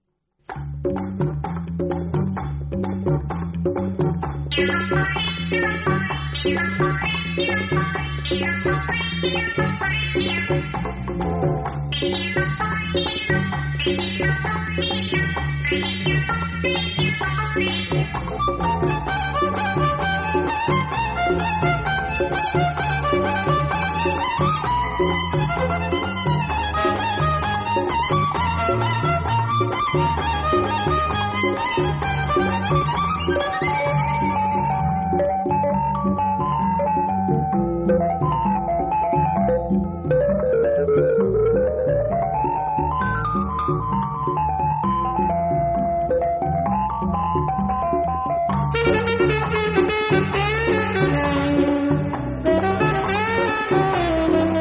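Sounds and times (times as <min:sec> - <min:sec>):
instrumental theme music: 0:00.4 - 0:54.5.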